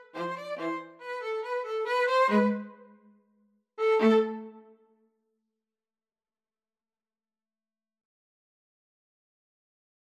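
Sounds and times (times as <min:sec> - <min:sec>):
string trio playing a gavotte: 0:00.0 - 0:02.7, 0:03.8 - 0:04.6.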